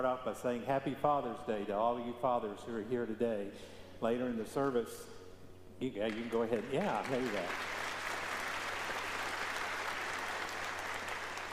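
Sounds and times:
speech: 0.0s - 5.2s, 5.8s - 7.7s
audience applauding: 6.1s - 11.5s.

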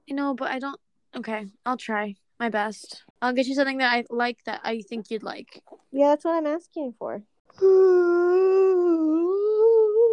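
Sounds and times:
speech: 0.2s - 8.7s
big yawn: 7.6s - 10.1s.

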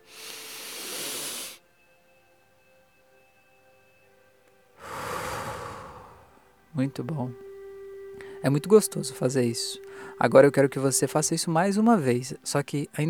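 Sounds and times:
deep breath slowly released: 0.0s - 1.6s, 4.8s - 6.5s
speech: 6.8s - 7.4s, 8.4s - 13.0s.

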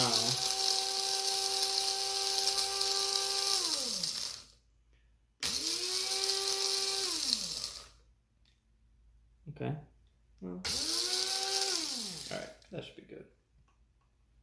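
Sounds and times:
grinding coffee beans in a grinder: 0.0s - 4.5s, 5.4s - 8.0s, 10.7s - 12.6s
speech: 9.6s - 10.8s, 12.3s - 13.4s.

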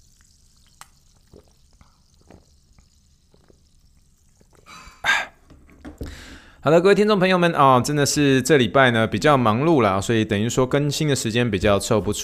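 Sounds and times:
sparkling water fizzing: 0.0s - 5.0s
speech: 6.6s - 12.2s.

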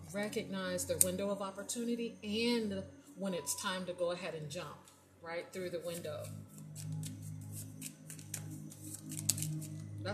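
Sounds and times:
speech: 0.1s - 7.1s
cards drawn from a hidden truth card deck: 5.9s - 9.8s.

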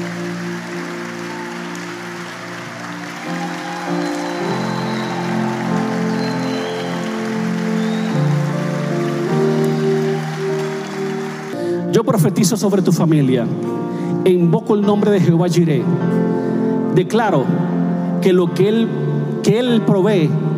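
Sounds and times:
audience applause: 0.0s - 11.6s
speech: 12.0s - 16.2s, 17.0s - 20.5s.

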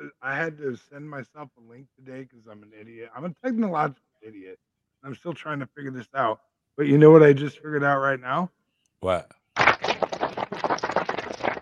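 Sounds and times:
speech: 0.2s - 9.8s
clapping sound effect: 9.6s - 11.6s.

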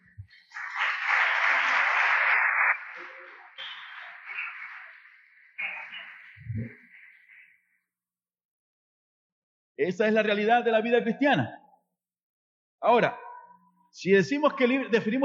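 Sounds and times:
audience applause: 0.0s - 6.0s
speech: 9.8s - 11.6s, 12.8s - 13.2s, 14.0s - 15.2s.

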